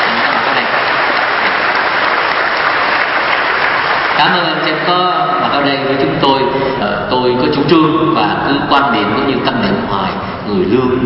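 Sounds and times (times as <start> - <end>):
audience applause: 0.0 - 5.5
speech: 4.2 - 11.0.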